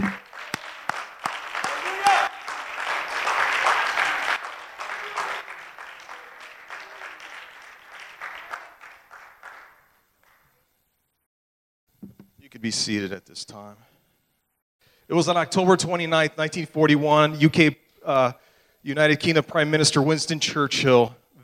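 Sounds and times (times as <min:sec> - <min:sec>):
audience hand clapping: 0:00.0 - 0:10.6
speech: 0:12.6 - 0:13.9, 0:15.1 - 0:21.2.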